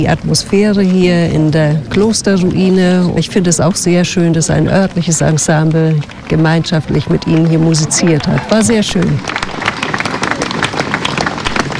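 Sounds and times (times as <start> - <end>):
speech: 0.0 - 9.7
long audience applause: 5.9 - 11.7.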